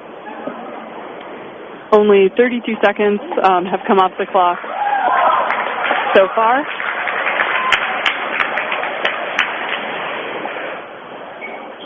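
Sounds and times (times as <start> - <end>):
speech: 1.9 - 4.7, 6.1 - 6.8
crowd clapping at basketball game: 4.4 - 10.6.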